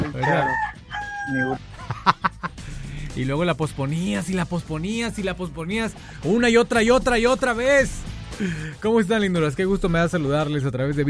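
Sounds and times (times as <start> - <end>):
alarm clock rooster-crow alarm tone: 0.2 - 1.6
speech: 1.3 - 2.3, 3.2 - 11.0
laughter: 1.7 - 3.2.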